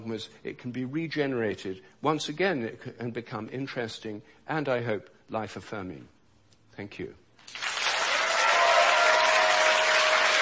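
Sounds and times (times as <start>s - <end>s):
speech: 0.1s - 6.2s, 6.8s - 7.6s
applause: 7.4s - 10.4s.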